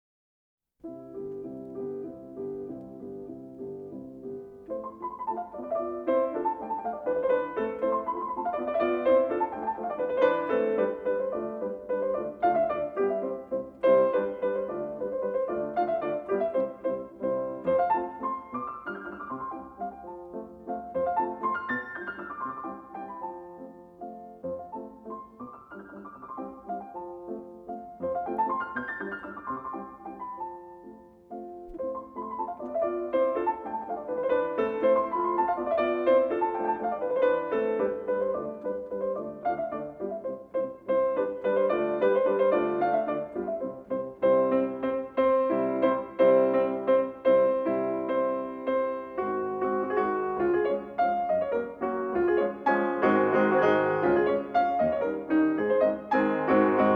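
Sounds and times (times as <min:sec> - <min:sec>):
piano mazurka in C major: 0:00.8 - 0:56.9.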